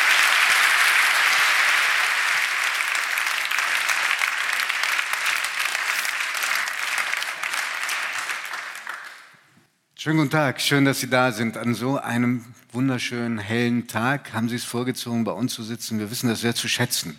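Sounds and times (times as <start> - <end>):
large audience applause welcoming guests on stage: 0.0 - 9.4
speech: 10.0 - 17.1.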